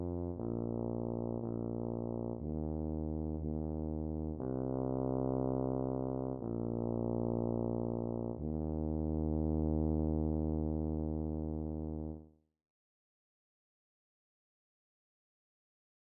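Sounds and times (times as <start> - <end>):
tuba: 0.0 - 12.4.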